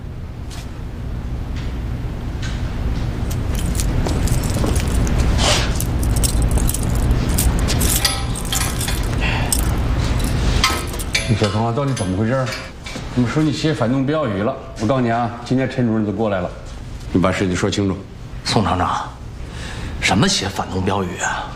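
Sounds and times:
steady noisy background: 0.0 - 21.5
keys jangling while unlocking handcuffs: 3.2 - 12.8
speech: 11.4 - 19.2, 20.1 - 21.5.

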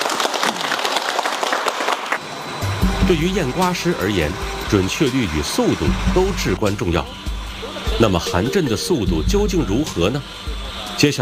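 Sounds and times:
audience applauding the winner of a watermelon-inspecting contest: 0.0 - 2.3
speech: 3.1 - 7.2, 8.0 - 11.1.

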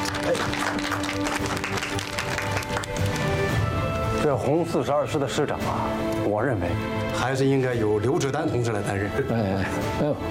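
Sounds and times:
group applause: 0.0 - 3.6
speech: 4.2 - 10.2.

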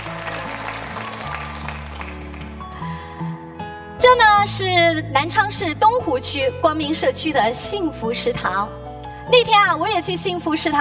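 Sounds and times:
audience applause: 0.0 - 2.9
speech: 4.1 - 10.7.

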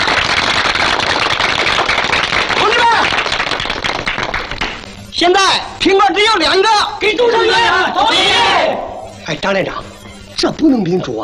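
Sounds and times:
crowd clapping: 0.0 - 5.1
speech: 5.2 - 11.2.

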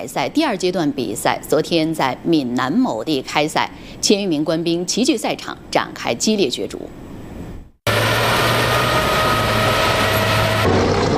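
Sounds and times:
speech: 0.0 - 7.0
heavy armored vehicle engines roaring on track: 7.9 - 11.1
high whine: 7.9 - 11.1.

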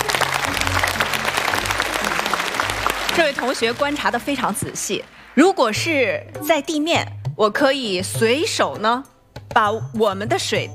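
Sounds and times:
classroom applause: 0.0 - 5.3
speech: 3.3 - 10.7.

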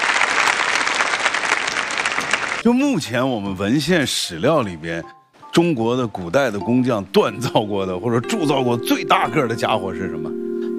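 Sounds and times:
audience applause welcoming a guest researcher: 0.0 - 2.6
speech: 2.6 - 10.4.

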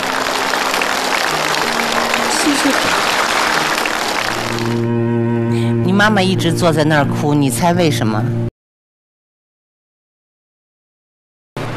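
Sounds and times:
audience applause: 0.0 - 4.9
speech: 6.0 - 8.5.

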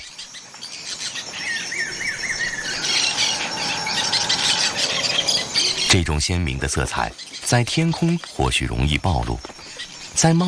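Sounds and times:
bird chatter: 0.0 - 10.4
parrots squawking: 1.6 - 5.9
speech: 6.0 - 9.6, 10.2 - 10.4.

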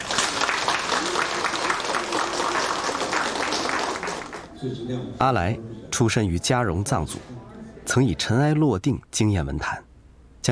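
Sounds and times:
audience applause welcoming speaker on stage: 0.0 - 4.5
speech: 4.6 - 10.5.

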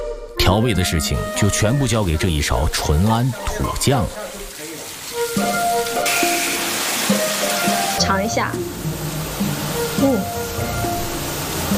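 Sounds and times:
speech: 0.5 - 4.4, 8.1 - 8.9, 10.0 - 10.4
fish frying in a pan: 3.3 - 11.7.

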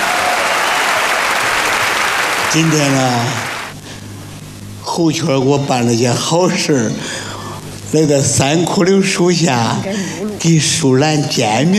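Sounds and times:
audience applause before a Chinese opera excerpt: 0.0 - 3.7
speech: 2.5 - 3.5, 5.0 - 7.1, 7.9 - 11.7.

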